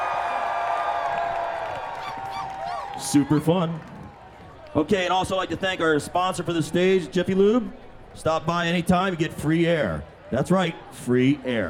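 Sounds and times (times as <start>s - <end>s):
large outdoor crowd screaming and cheering: 0.0s - 4.8s
speech: 3.1s - 4.0s, 4.7s - 11.6s.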